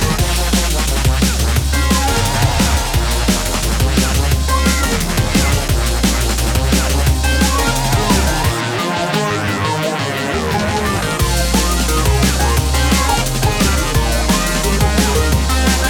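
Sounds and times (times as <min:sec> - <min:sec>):
rock music with bass: 0:00.0 - 0:15.8.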